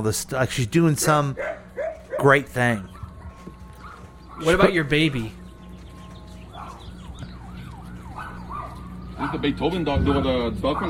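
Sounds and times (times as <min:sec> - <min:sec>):
speech: 0:00.0 - 0:01.6, 0:02.2 - 0:02.9, 0:04.4 - 0:05.4, 0:09.2 - 0:10.8
siren wailing: 0:02.8 - 0:10.8
steady low engine-like hum: 0:03.0 - 0:10.8.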